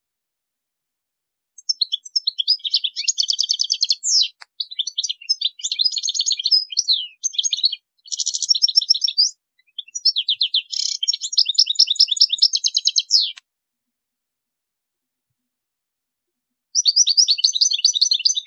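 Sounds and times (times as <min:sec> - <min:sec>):
European goldfinch song: 0:01.6 - 0:13.4, 0:16.8 - 0:18.4.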